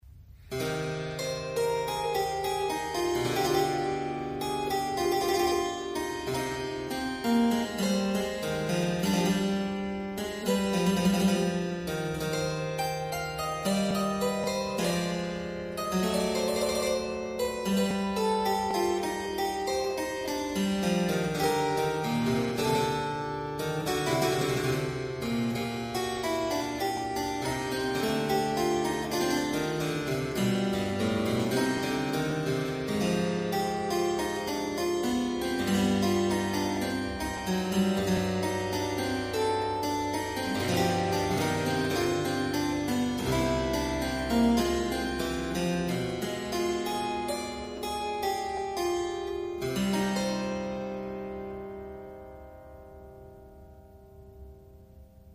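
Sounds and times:
short prelude: 0:00.1 - 0:55.3.

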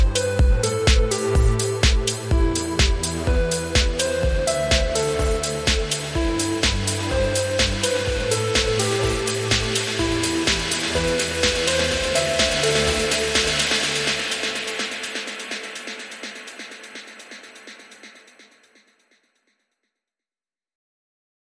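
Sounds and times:
lead melody: 0:00.0 - 0:15.4
drums: 0:00.0 - 0:19.1.

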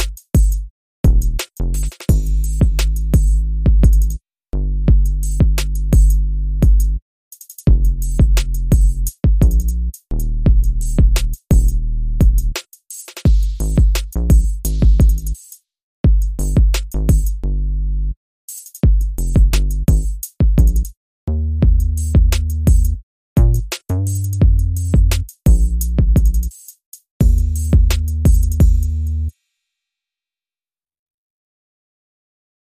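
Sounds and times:
drums: 0:00.0 - 0:04.2, 0:04.9 - 0:17.4, 0:18.5 - 0:20.9, 0:21.6 - 0:29.3
bass: 0:00.0 - 0:07.0, 0:07.7 - 0:12.6, 0:13.3 - 0:15.4, 0:16.0 - 0:18.2, 0:18.8 - 0:26.5, 0:27.2 - 0:29.3.

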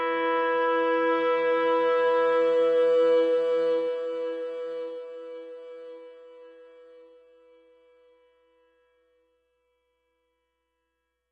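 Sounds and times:
woodwinds: 0:00.0 - 0:07.0.

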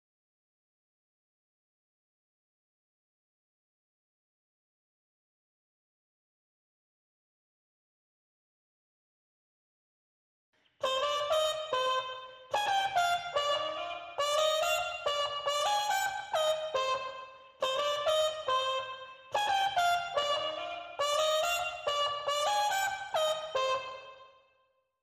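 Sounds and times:
clean trumpet: 0:10.8 - 0:24.4.

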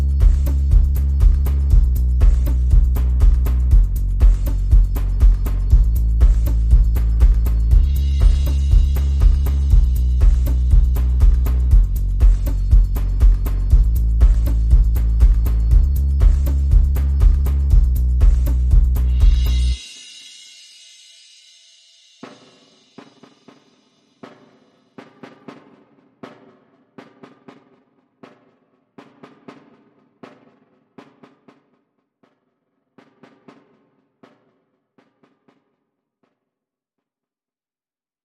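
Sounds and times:
bass: 0:00.0 - 0:19.8
drums: 0:00.0 - 0:35.8.

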